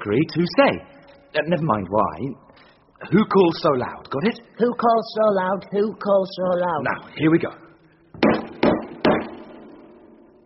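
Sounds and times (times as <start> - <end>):
speech: 0.0 - 7.6
knocking: 8.2 - 10.1.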